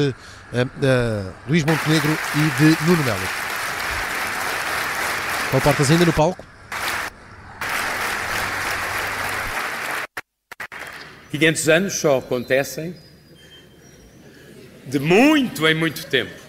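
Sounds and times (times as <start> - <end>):
speech: 0.0 - 3.4, 5.5 - 6.5, 11.3 - 13.1, 14.9 - 16.4
standing ovation applause at political rally: 1.6 - 11.1.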